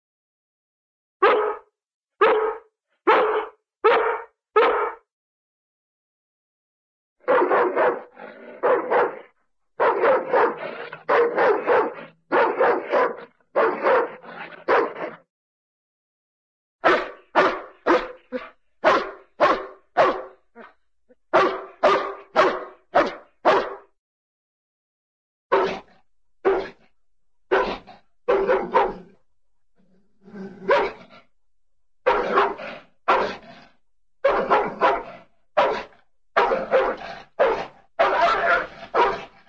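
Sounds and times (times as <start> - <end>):
cartoon St. Bernard dog barking: 1.2 - 5.0, 7.2 - 15.2, 16.8 - 20.7, 21.3 - 23.9, 25.5 - 25.9, 26.5 - 26.8, 27.5 - 29.1, 30.6 - 31.0, 32.1 - 33.4, 34.2 - 39.4.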